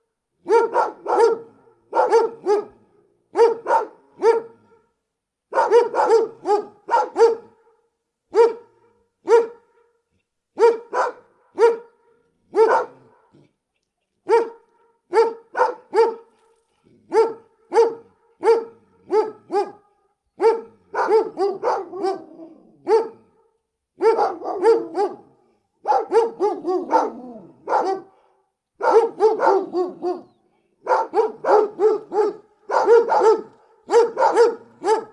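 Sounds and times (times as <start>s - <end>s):
big dogs barking: 0.4s - 4.6s, 5.5s - 7.7s, 8.3s - 9.8s, 10.6s - 13.3s, 14.3s - 16.3s, 17.1s - 23.3s, 24.0s - 28.2s, 28.8s - 35.1s.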